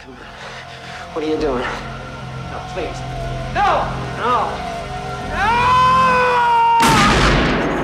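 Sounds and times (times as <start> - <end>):
sustained high tone: 0.0 - 6.7
speech: 1.2 - 1.9, 2.5 - 4.7, 5.3 - 5.7
sawn-off shotgun blast in an audio drama: 6.8 - 7.8.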